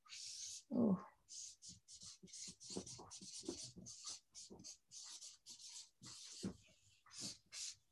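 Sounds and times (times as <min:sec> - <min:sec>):
marker strokes squeaking and scratching on a board: 0:01.3 - 0:07.8.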